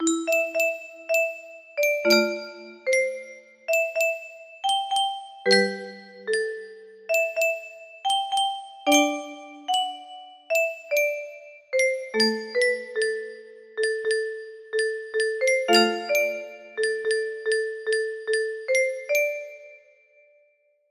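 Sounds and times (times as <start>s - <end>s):
music box melody: 0.0s - 19.9s.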